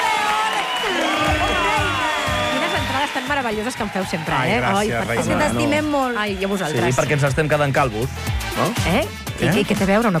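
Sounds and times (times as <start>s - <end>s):
excited shouts: 0.0s - 7.0s
studio audience cheering and clapping for a guest: 0.0s - 8.8s
speech: 3.3s - 10.1s.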